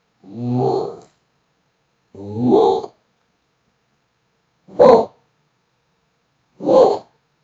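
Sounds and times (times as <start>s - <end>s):
angry frustrated voice: 0.3s - 1.0s, 2.2s - 2.9s, 4.7s - 5.2s, 6.6s - 7.1s.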